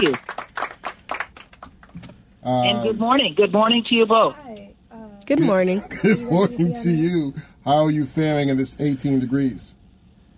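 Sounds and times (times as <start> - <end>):
speech: 0.0 - 0.4, 2.4 - 4.7, 5.3 - 9.8
hand-clap applause: 0.0 - 2.2.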